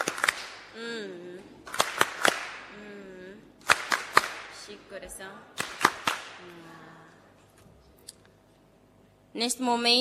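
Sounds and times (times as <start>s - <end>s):
hand claps: 0.0s - 0.7s, 1.6s - 2.7s, 3.6s - 4.5s, 5.6s - 6.4s
speech: 4.7s - 5.6s, 6.4s - 7.0s, 9.3s - 9.9s.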